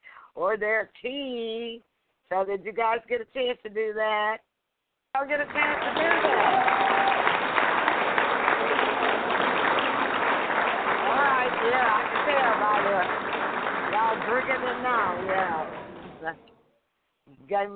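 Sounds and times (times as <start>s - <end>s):
speech: 0.4s - 4.5s, 5.2s - 7.0s, 11.4s - 13.3s, 14.1s - 16.5s, 17.3s - 17.7s
audience giving a tired applause: 5.2s - 15.9s.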